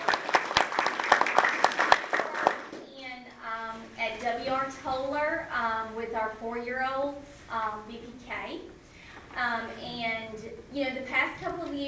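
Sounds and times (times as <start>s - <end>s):
audience clapping: 0.0s - 2.8s
faint steady tonal hum: 0.0s - 11.8s
speech: 6.0s - 8.7s, 9.4s - 11.8s.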